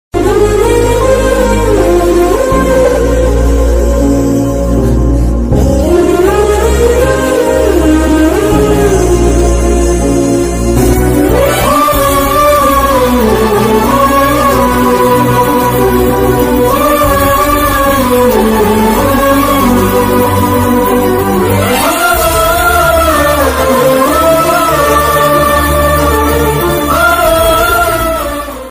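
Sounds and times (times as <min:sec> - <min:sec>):
emotional Telugu background music ringtone: 0:00.2 - 0:28.7.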